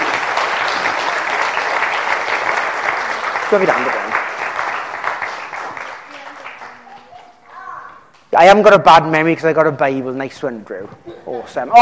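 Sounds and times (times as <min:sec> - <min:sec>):
audience applause: 0:00.0 - 0:07.7
speech: 0:03.5 - 0:04.0, 0:08.4 - 0:11.8.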